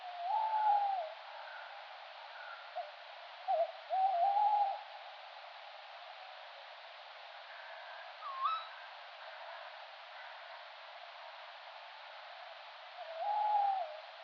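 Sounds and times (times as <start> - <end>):
adult male tawny owl Strix aluco hooting territorial advertising call: 0.0 - 1.6, 3.5 - 4.8, 8.2 - 8.8, 13.0 - 14.0.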